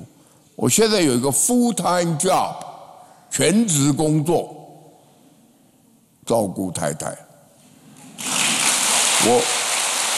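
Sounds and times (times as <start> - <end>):
speech: 0.6 - 2.7, 3.3 - 4.6, 6.3 - 7.2, 9.2 - 9.6
audience clapping: 8.2 - 10.1.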